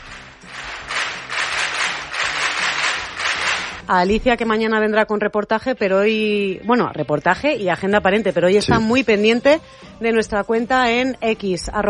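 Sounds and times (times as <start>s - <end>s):
group clapping: 0.0s - 3.8s
speech: 3.9s - 11.8s.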